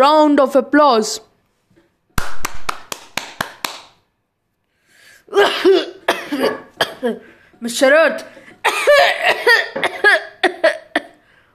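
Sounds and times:
speech: 0.0s - 1.3s, 5.3s - 10.0s
choking cough: 5.3s - 7.2s, 8.6s - 11.2s.

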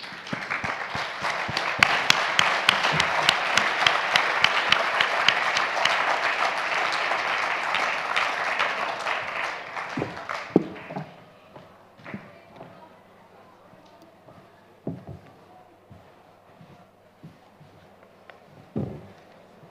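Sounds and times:
audience applause welcoming speaker: 0.0s - 11.2s.

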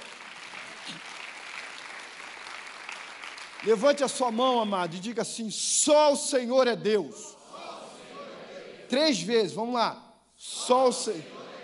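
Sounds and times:
audience applauding: 0.0s - 4.7s
speech: 3.6s - 7.4s, 8.9s - 11.4s.

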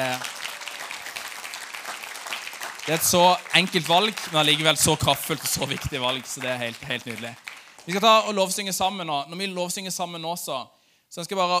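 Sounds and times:
audience applause: 0.0s - 8.4s
speech: 2.9s - 11.5s.

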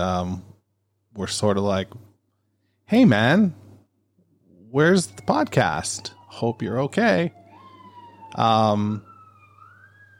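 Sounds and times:
speech: 0.0s - 0.5s, 1.2s - 2.1s, 2.9s - 3.6s, 4.7s - 7.4s, 8.3s - 9.1s
emergency vehicle siren passing outside: 4.4s - 10.1s.

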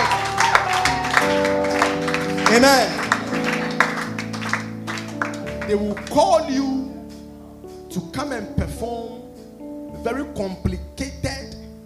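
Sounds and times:
audience clapping: 0.0s - 6.4s
sustained musical tones: 0.0s - 8.6s
speech: 2.6s - 3.0s, 5.7s - 6.8s, 7.9s - 9.2s, 10.0s - 10.9s.

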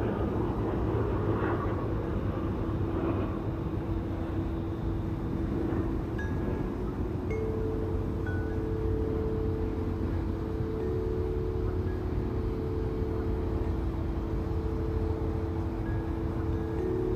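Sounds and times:
sustained tone: 0.1s - 17.1s
chime tree ringing: 5.9s - 17.1s.

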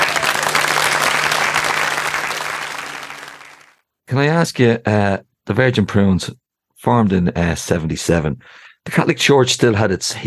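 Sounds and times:
audience applause welcoming a band: 0.0s - 3.8s
speech: 4.1s - 10.2s.

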